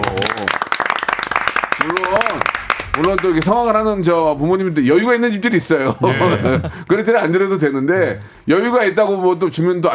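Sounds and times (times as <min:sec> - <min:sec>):
people clapping: 0:00.0 - 0:03.9
speech: 0:03.0 - 0:09.9
laughter: 0:05.7 - 0:07.0.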